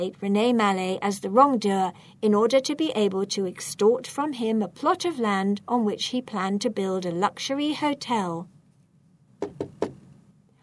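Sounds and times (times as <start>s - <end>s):
speech: 0.0s - 8.6s, 9.4s - 9.8s
knocks on a wooden dining room door: 9.4s - 10.0s.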